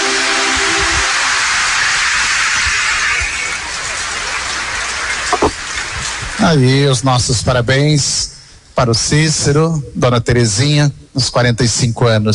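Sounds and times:
round of applause: 0:00.0 - 0:06.4
speech: 0:06.5 - 0:12.3.

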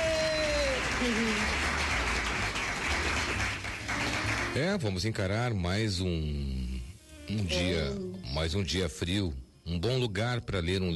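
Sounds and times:
crowd applause: 0:00.0 - 0:04.7
speech: 0:01.0 - 0:01.6, 0:04.5 - 0:06.6, 0:07.3 - 0:10.9.

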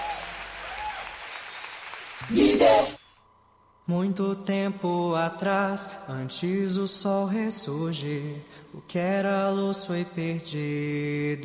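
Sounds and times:
audience applause: 0:00.0 - 0:03.0
speech: 0:02.2 - 0:03.0, 0:03.9 - 0:11.4.

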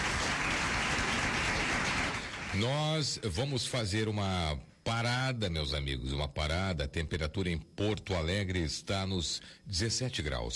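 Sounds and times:
applause for a birthday guest's song performance: 0:00.0 - 0:03.0
speech: 0:02.6 - 0:10.5.

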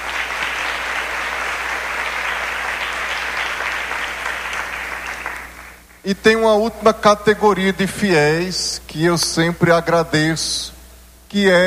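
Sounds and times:
audience applause: 0:00.0 - 0:05.9
speech: 0:06.0 - 0:11.6.

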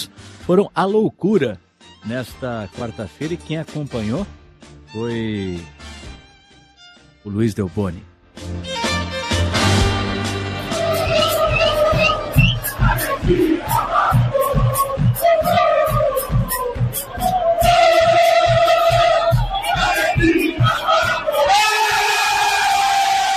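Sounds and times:
speech: 0:00.5 - 0:05.8, 0:07.2 - 0:08.8
steady pounding rhythmic beat: 0:08.6 - 0:23.3
Argentine football fans roaring a celebratory chant in unison: 0:10.4 - 0:23.3.

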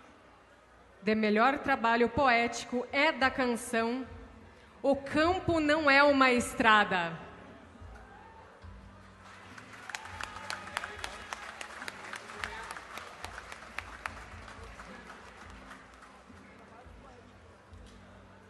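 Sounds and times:
speech: 0:01.0 - 0:04.2, 0:04.8 - 0:07.2
audience applause: 0:09.2 - 0:16.6.

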